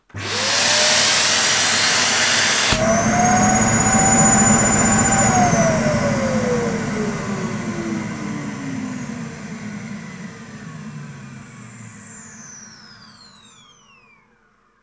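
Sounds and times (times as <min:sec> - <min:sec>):
blocked Henry Hoover vacuum cleaner running down: 0:00.0 - 0:13.7.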